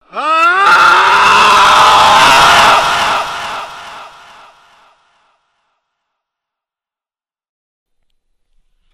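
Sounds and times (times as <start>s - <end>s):
person screaming: 0.0s - 4.6s.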